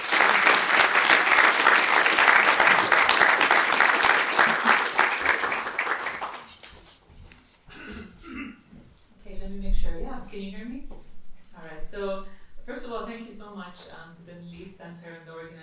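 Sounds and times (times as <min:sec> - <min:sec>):
audience applause: 0:00.0 - 0:06.8.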